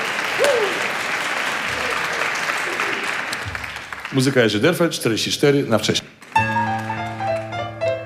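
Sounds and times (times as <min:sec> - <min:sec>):
audience applause: 0:00.0 - 0:04.6, 0:06.2 - 0:07.8
whistle or cheer: 0:00.4 - 0:00.8
speech: 0:04.1 - 0:06.0.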